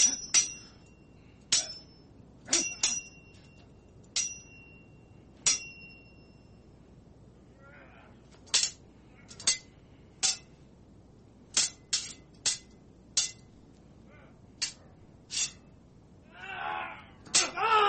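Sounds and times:
metallic swords clashing: 0.0 - 6.2, 8.3 - 10.5, 11.5 - 13.5, 14.6 - 15.7, 17.2 - 17.8.

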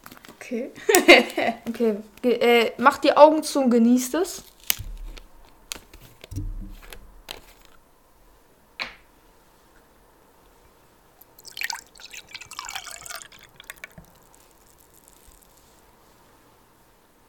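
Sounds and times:
speech: 0.5 - 4.5
drink pouring into a glass: 11.2 - 15.1
drips: 11.2 - 15.1.

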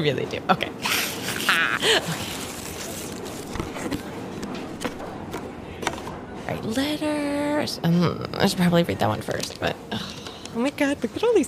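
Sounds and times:
speech: 0.0 - 2.4, 3.8 - 4.1, 6.5 - 11.4
colourful paper wrapping torn off a package: 0.9 - 4.0.

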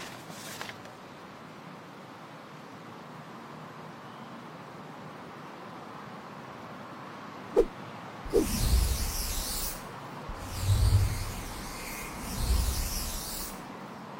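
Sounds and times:
flying broom airy whooshes: 8.3 - 13.6
low steady rumble: 10.3 - 13.3.

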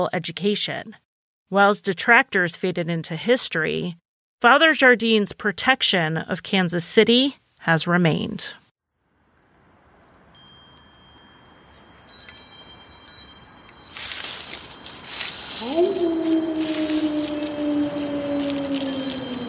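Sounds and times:
speech: 0.0 - 8.6
wind chimes: 9.8 - 19.4.

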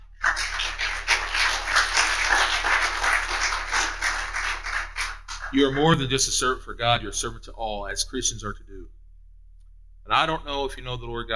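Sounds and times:
audience applause: 0.1 - 6.0
speech: 5.5 - 9.0, 10.1 - 11.3.

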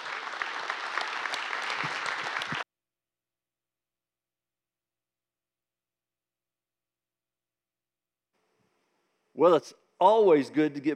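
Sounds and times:
church service audience applauding a visiting pastor: 0.0 - 2.6
speech: 9.4 - 10.9.

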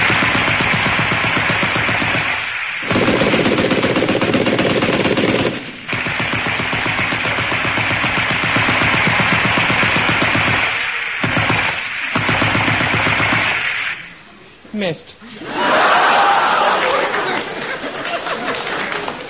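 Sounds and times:
automatic gunfire from a dozen armed policemen: 0.0 - 14.0
laughter: 15.2 - 19.2.

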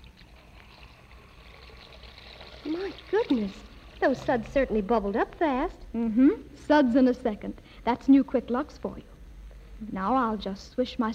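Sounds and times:
water running into a basin: 0.0 - 5.2
speech: 2.6 - 9.1, 9.8 - 11.1.

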